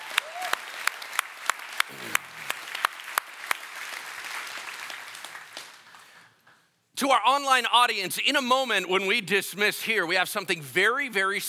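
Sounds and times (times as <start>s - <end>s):
audience applause as performers leave a stage: 0.0s - 6.4s
speech: 7.0s - 11.4s.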